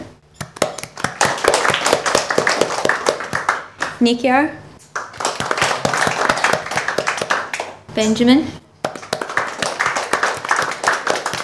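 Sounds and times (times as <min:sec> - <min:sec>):
audience round of applause: 0:00.6 - 0:04.0, 0:04.9 - 0:07.8, 0:08.9 - 0:11.4
speech: 0:04.0 - 0:04.6, 0:08.0 - 0:08.6.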